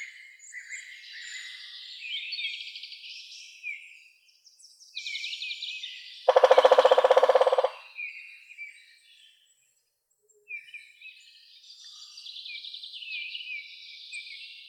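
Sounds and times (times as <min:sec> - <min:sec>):
woodpecker Picidae: 0:06.3 - 0:08.0.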